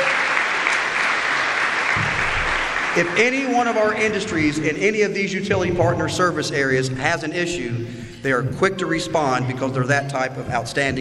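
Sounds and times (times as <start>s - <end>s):
audience applause at a recognition event: 0.0s - 4.6s
speech: 3.0s - 11.0s.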